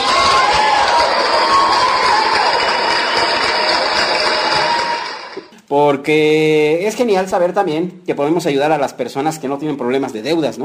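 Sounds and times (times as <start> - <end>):
applause: 0.0 - 5.5
cheering: 0.0 - 5.5
speech: 5.7 - 10.6.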